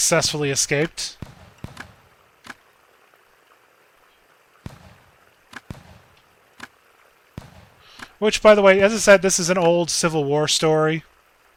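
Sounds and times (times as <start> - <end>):
speech: 0.0 - 1.3, 8.2 - 11.1
gunshots in the video game An Occurrence at Owl Creek Bridge: 1.2 - 2.2, 4.6 - 6.7, 7.4 - 8.2.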